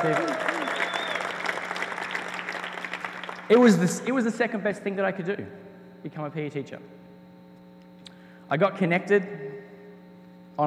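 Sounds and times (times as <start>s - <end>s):
speech: 0.0s - 0.6s, 3.5s - 7.0s, 8.5s - 9.4s
audience cheering and clapping: 0.0s - 3.9s.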